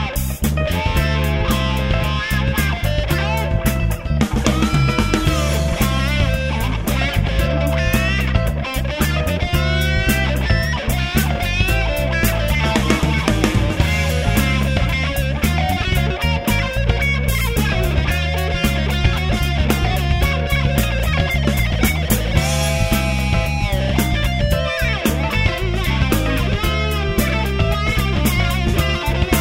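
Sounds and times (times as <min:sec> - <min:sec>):
funk blues rock band playing: 0:00.0 - 0:29.3.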